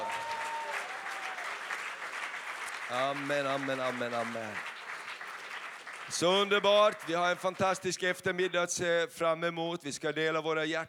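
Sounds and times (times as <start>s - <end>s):
audience applause: 0.0s - 7.6s
speech: 2.9s - 4.8s, 6.1s - 10.8s.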